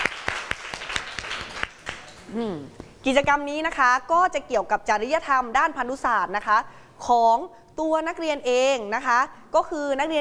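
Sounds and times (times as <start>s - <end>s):
classroom applause: 0.0s - 2.3s
speech: 2.3s - 10.2s.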